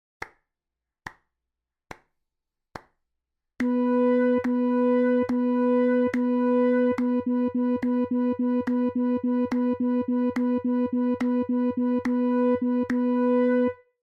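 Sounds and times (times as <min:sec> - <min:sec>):
rhythm practice: 0:03.6 - 0:13.7.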